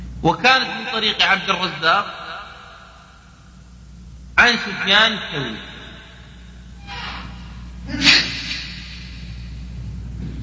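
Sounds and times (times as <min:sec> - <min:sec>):
low steady hum: 0:00.0 - 0:10.4
speech: 0:00.2 - 0:02.2, 0:04.4 - 0:05.7
sneeze: 0:07.0 - 0:08.8.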